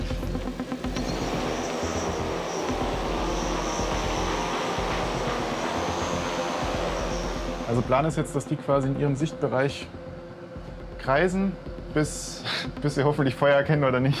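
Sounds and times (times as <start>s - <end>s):
propeller airplane taking off: 0.3s - 8.2s
speech: 7.7s - 10.1s, 11.1s - 14.1s.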